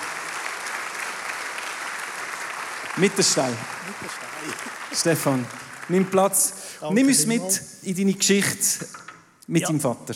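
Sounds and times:
audience applause: 0.0 - 6.6
speech: 3.0 - 10.1.

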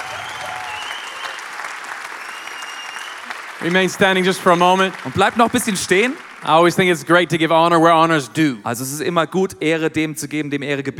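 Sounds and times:
audience clapping hands: 0.0 - 7.9
speech: 3.6 - 10.9.

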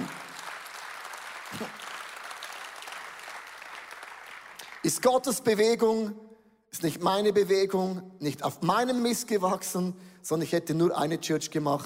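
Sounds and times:
audience applause: 0.0 - 5.0
speech: 1.5 - 1.8, 4.8 - 11.8.

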